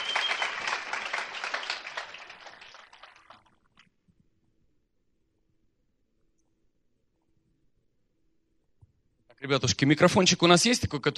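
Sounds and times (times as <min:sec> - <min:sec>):
audience applause welcoming a guest speaker: 0:00.0 - 0:03.6
speech: 0:09.4 - 0:11.1.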